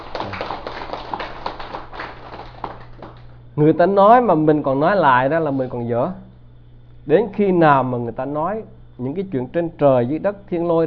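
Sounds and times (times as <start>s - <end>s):
audience applause: 0.0s - 3.3s
speech: 3.6s - 6.2s, 7.1s - 10.8s.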